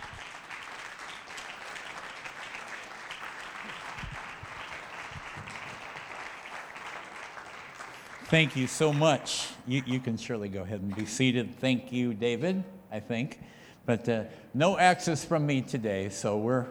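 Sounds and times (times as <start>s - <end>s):
audience applause: 0.0s - 11.4s
speech: 8.3s - 16.6s.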